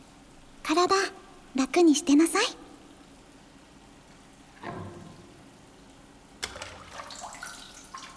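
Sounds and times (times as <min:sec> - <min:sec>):
speech: 0:00.7 - 0:02.6
hot water poured over body to rinse off soap: 0:06.6 - 0:08.1.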